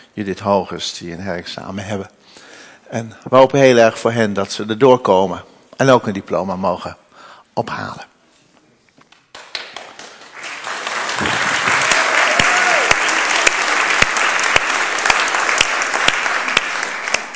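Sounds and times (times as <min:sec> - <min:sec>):
speech: 0:00.2 - 0:07.0, 0:07.6 - 0:08.1
audience applause for graduates: 0:09.4 - 0:17.3.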